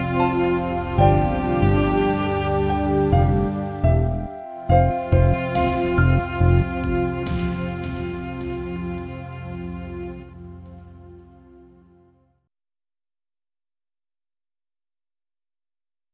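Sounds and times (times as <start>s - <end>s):
piano: 0.0s - 9.3s.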